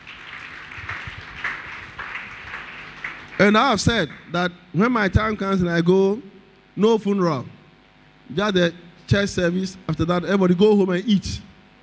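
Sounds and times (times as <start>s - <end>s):
audience clapping hands: 0.0s - 4.4s
speech: 3.4s - 7.6s, 8.3s - 11.5s.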